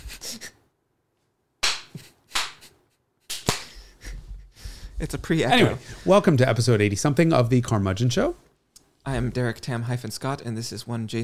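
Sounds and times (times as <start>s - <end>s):
hand clap: 1.6s - 2.7s, 3.3s - 3.8s
speech: 5.0s - 11.2s.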